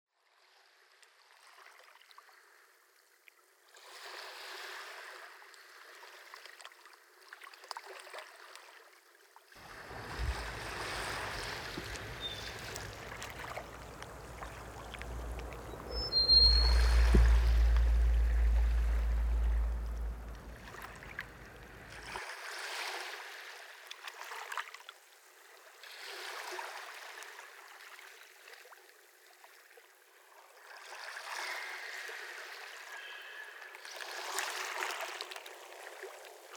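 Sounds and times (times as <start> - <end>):
soundscape: 9.6 - 22.1.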